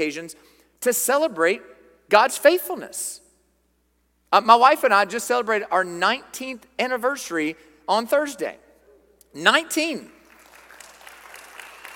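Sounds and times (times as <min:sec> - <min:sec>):
speech: 0:00.0 - 0:03.2, 0:04.3 - 0:08.6, 0:09.3 - 0:10.2
audience clapping: 0:10.2 - 0:11.9.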